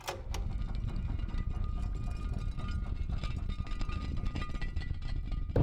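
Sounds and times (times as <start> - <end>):
stone door: 0.0 - 5.5.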